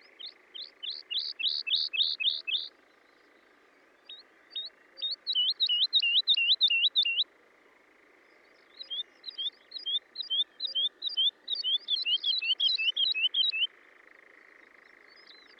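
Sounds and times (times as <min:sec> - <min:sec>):
woodlark singing: 0:00.0 - 0:02.7, 0:04.1 - 0:07.3, 0:08.8 - 0:13.7.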